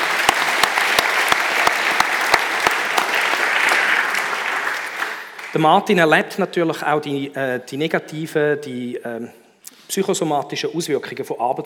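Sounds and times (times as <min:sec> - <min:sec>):
audience applause: 0:00.0 - 0:05.6
sharp evenly spaced claps: 0:00.0 - 0:05.6
speech: 0:05.6 - 0:11.6.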